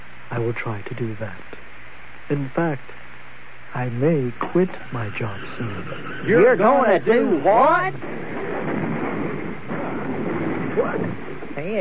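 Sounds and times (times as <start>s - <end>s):
speech: 0.4s - 1.6s, 2.3s - 3.0s, 3.7s - 9.0s, 10.8s - 11.7s
car wreck outside: 7.9s - 11.7s.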